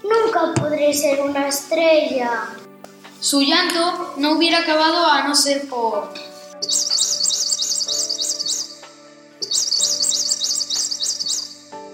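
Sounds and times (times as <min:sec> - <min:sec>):
speech: 0:00.4 - 0:02.6, 0:03.2 - 0:06.9
baby blue tanager chirping: 0:06.6 - 0:08.8, 0:09.4 - 0:11.7.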